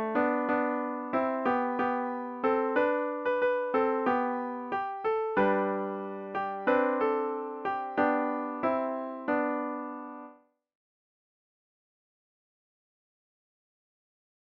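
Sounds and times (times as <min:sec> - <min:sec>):
piano: 0:00.0 - 0:10.5.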